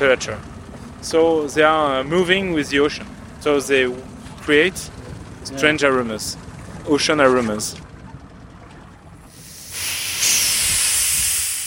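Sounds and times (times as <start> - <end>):
speech: 0.0 - 7.9
CO2 hissing out of a wine barrel recovered from the sea: 9.3 - 11.6.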